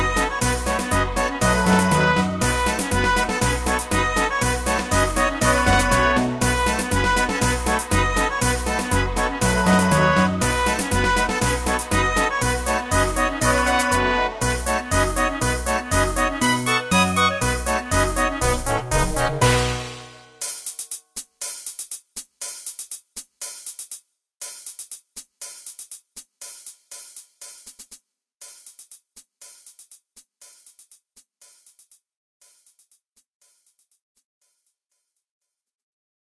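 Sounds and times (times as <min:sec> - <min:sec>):
fanfare: 0:00.0 - 0:20.6.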